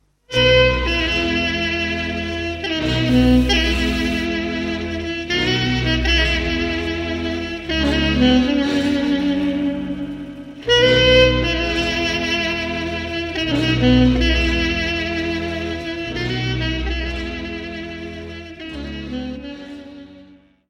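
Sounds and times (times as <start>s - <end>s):
Briul folk dance music from Romania: 0.3s - 20.0s.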